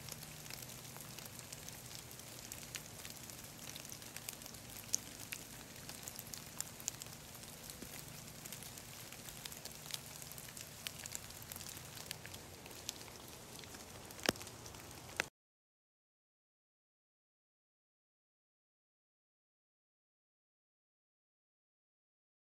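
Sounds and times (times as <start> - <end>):
rain in the woods: 0.0 - 15.3.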